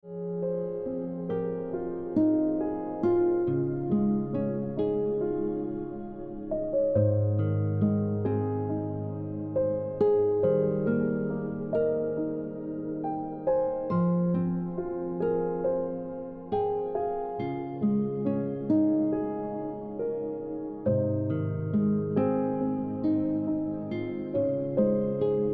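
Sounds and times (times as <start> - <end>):
piano ringtone music: 0.0 - 25.5.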